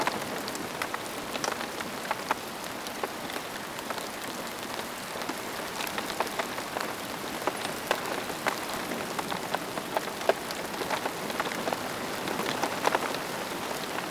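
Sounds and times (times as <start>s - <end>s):
rain while camping: 0.0s - 14.1s.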